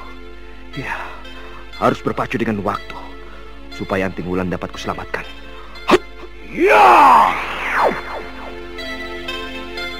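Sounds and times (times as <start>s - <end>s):
speech: 0.8s - 1.2s, 1.8s - 3.0s, 3.8s - 5.4s, 6.5s - 7.6s
swooping whoosh of arrows shot from hiding: 7.0s - 9.1s.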